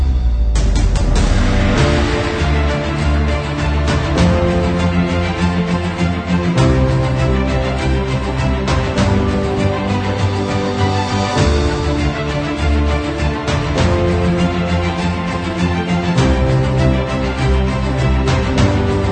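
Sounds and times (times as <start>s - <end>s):
epic uplifting inspiring cinematic music: 0.0s - 19.1s.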